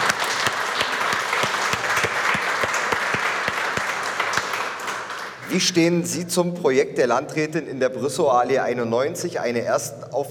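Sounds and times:
audience applause: 0.0 - 5.5
speech: 5.5 - 10.2.

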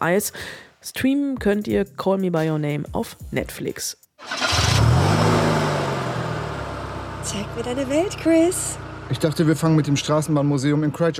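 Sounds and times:
speech: 0.0 - 5.0, 7.3 - 11.1
motorhome engine starting and driving off: 4.2 - 10.5.

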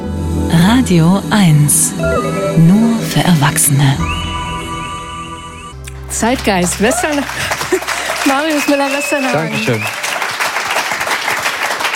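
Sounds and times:
speech: 0.7 - 4.3, 6.1 - 10.0
audience applause: 6.0 - 11.9
laughter: 6.8 - 8.8.

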